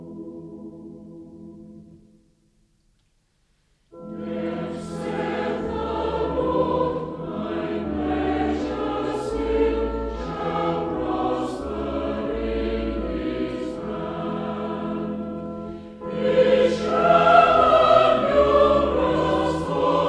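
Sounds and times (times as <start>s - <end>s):
choir singing hymns: 4.0s - 20.0s.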